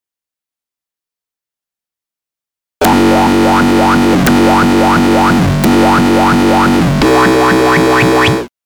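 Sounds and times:
dubstep music: 0:02.8 - 0:08.5.

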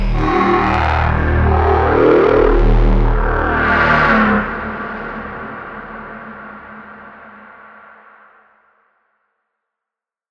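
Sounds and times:
smooth wave blends: 0:00.0 - 0:07.5.

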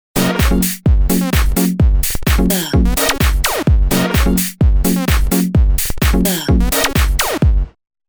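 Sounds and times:
deep house music: 0:00.2 - 0:07.7.

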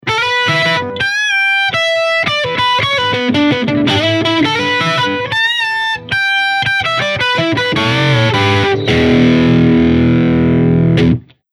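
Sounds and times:
electric guitar through Engl RB 100 amp, low gain lead: 0:00.0 - 0:11.3.

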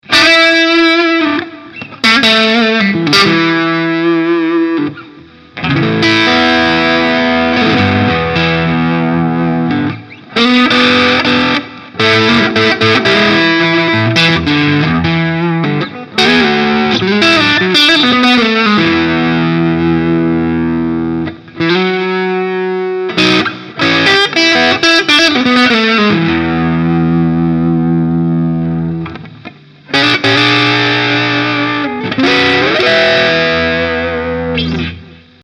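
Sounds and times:
Strat electric guitar playing blues through overdrive: 0:00.0 - 0:35.4.

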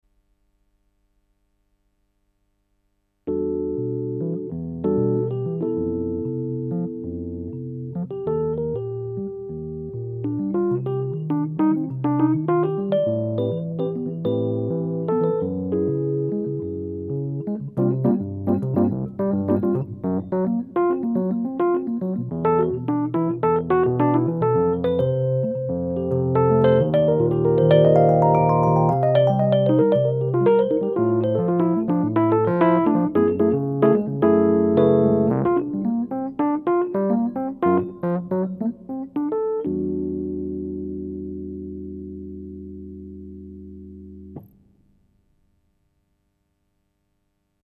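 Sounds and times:
Rhodes electric piano: 0:03.3 - 0:44.5.

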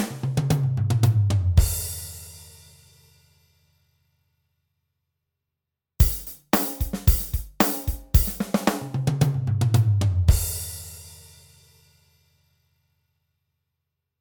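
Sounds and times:
drums: 0:00.0 - 0:03.2, 0:06.0 - 0:11.9.

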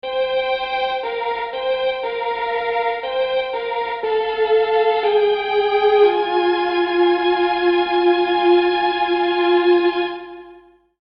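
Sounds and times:
strings: 0:00.0 - 0:10.8.

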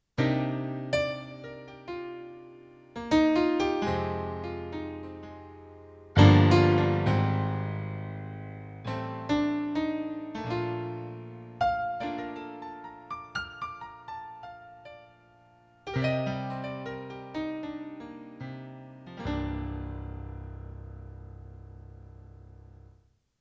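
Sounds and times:
piano: 0:00.0 - 0:23.0.

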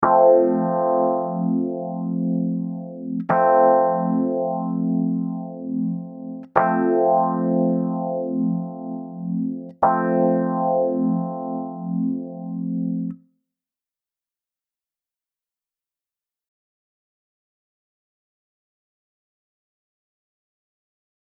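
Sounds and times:
keys through Chandler TG 1 with harmonic distortion: 0:00.0 - 0:13.2.

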